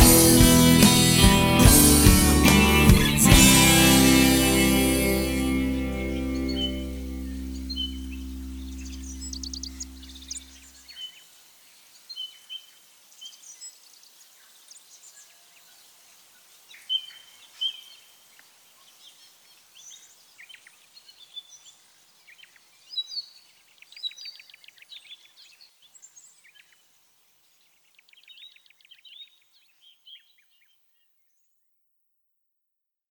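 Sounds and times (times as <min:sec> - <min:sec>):
karaoke ambience: 0:00.0 - 0:10.1.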